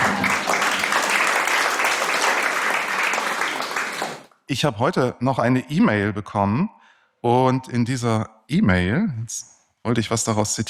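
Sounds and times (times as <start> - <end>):
audience applause: 0.0 - 4.3
speech: 4.5 - 10.6.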